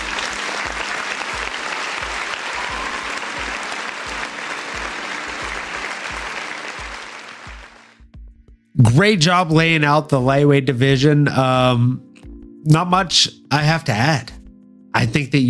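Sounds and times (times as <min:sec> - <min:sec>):
applause: 0:00.0 - 0:08.0
speech: 0:08.8 - 0:14.3, 0:14.9 - 0:15.4.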